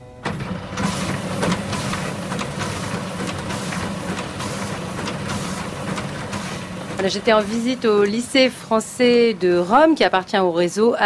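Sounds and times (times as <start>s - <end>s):
document scanner digitizing baccalaureate exam papers at the French lycée in Rome: 0.0s - 10.1s
speech: 7.0s - 11.0s.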